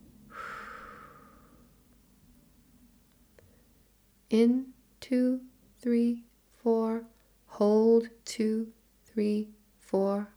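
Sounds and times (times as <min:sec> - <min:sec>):
person breathing out during a breathing exercise: 0:00.3 - 0:01.7
speech: 0:04.3 - 0:10.3.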